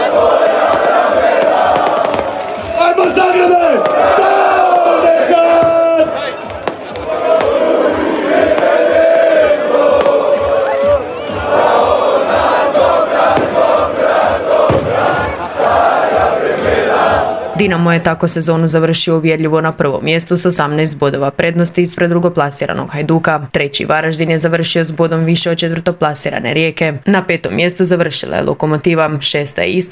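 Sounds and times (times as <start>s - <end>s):
football players and fans cheering and chanting in a stadium car park: 0.0s - 18.3s
speech: 17.7s - 29.8s.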